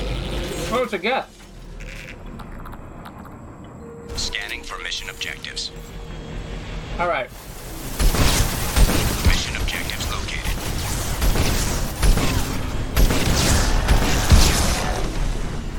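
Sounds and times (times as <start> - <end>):
Hammerhead hover tank steady mechanical rumble: 0.0 - 15.7
speech: 0.7 - 1.4, 5.0 - 6.2, 7.0 - 7.4
Hammerhead hover tank fast-shooting rocket launcher firing in a video game: 7.8 - 15.7.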